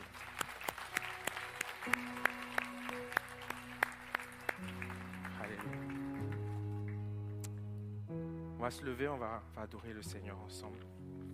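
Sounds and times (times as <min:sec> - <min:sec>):
group applause: 0:00.0 - 0:07.5
speech: 0:08.6 - 0:11.0.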